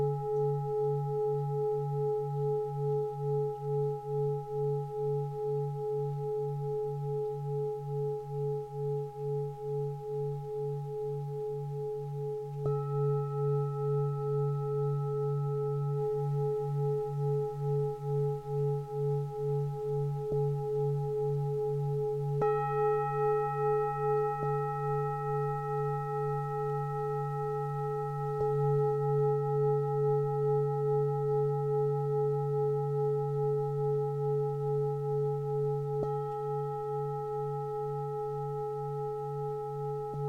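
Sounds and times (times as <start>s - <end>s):
Tibetan bowls humming: 0.0s - 40.2s.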